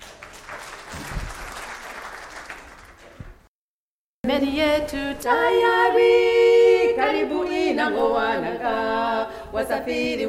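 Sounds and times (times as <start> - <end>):
audience applause: 0.0 - 3.2
speech: 4.4 - 6.4, 7.0 - 10.2.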